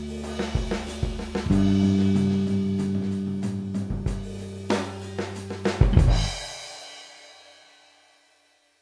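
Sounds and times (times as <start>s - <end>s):
blues music: 0.0s - 6.7s.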